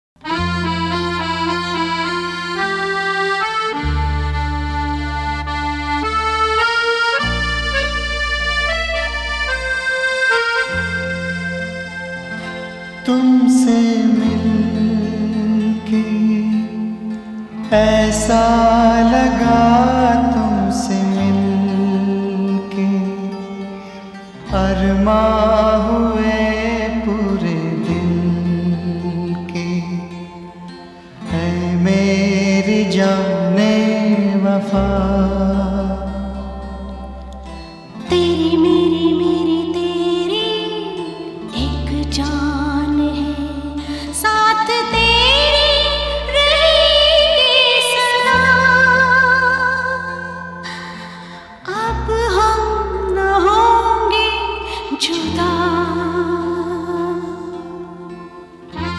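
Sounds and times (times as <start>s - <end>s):
sad Hindi song: 0.2s - 58.9s.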